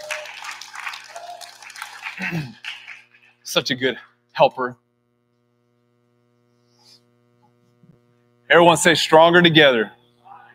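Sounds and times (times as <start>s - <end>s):
audience applause: 0.0s - 3.3s
speech: 2.2s - 2.6s, 3.5s - 4.8s, 8.5s - 10.0s.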